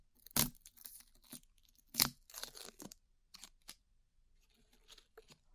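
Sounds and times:
glue being peeled off ears: 0.2 - 3.7.

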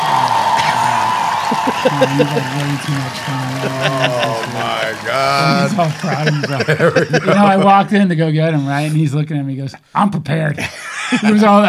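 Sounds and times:
audience applause: 0.0 - 7.9
laughter: 0.0 - 8.9, 10.6 - 11.6
speech: 1.8 - 11.6.

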